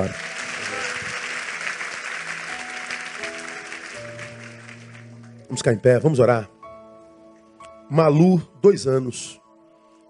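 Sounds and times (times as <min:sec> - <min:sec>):
speech: 0:00.0 - 0:00.3, 0:05.5 - 0:06.6, 0:07.9 - 0:09.4
audience applause: 0:00.0 - 0:05.3.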